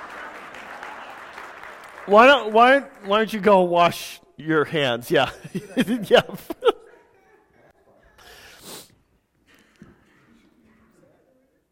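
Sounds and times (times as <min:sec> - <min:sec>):
round of applause: 0:00.0 - 0:03.6
speech: 0:02.0 - 0:06.7
laughter: 0:05.2 - 0:08.2.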